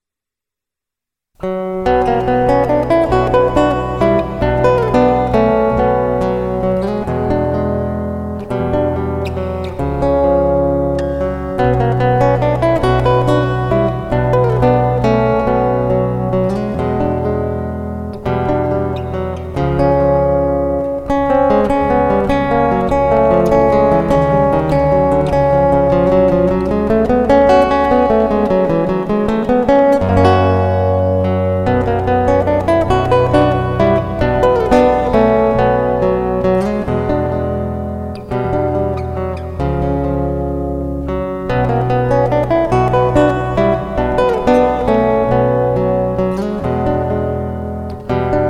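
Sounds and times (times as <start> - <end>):
music: 1.4 - 48.4.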